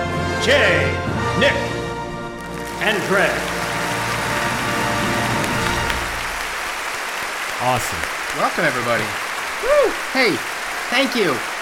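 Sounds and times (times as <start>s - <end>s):
speech: 0.4s - 1.8s, 2.8s - 3.6s, 7.6s - 11.5s
large crowd applause: 2.4s - 11.5s.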